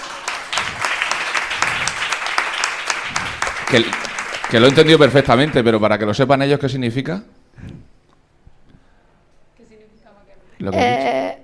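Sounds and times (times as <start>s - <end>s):
audience applause: 0.0s - 5.9s
speech: 3.7s - 7.7s, 10.6s - 11.2s.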